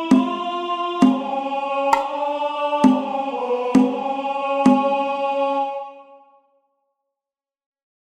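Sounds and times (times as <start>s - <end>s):
tenor singing: 0.0s - 6.3s.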